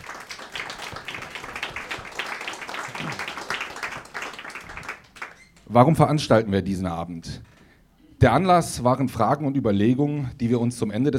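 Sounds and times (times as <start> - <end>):
applause: 0.0 - 5.6
speech: 5.7 - 7.5, 8.2 - 11.1.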